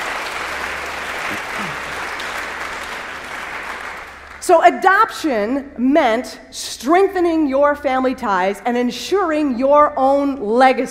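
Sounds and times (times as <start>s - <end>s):
audience applause: 0.0s - 4.4s
speech: 4.5s - 10.8s.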